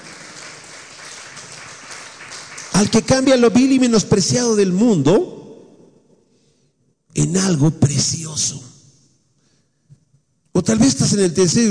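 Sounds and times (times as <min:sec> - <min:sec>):
congregation applauding in praise of the Lord during a church service: 0:00.0 - 0:03.9
speech: 0:02.8 - 0:05.4, 0:07.3 - 0:08.7, 0:10.6 - 0:11.6.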